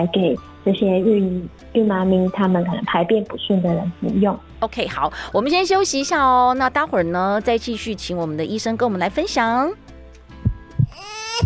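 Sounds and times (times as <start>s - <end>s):
speech: 0.0s - 9.8s
newborn's heartbeat at birth: 10.4s - 11.4s.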